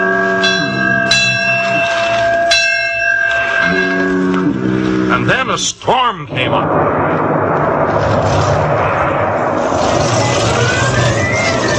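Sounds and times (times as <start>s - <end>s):
buoy bells ringing at sea: 0.0s - 5.2s
low shifting drone: 0.0s - 11.7s
speech: 5.2s - 7.1s.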